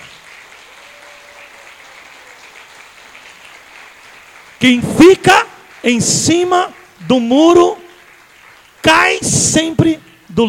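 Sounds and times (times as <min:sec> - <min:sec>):
audience applause: 0:00.0 - 0:10.2
speech: 0:04.6 - 0:07.8, 0:08.8 - 0:10.4.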